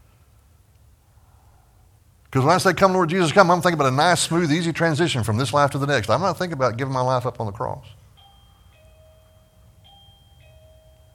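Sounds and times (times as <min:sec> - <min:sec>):
speech: 0:02.4 - 0:08.0
bell ringing: 0:03.1 - 0:05.1, 0:08.1 - 0:11.1.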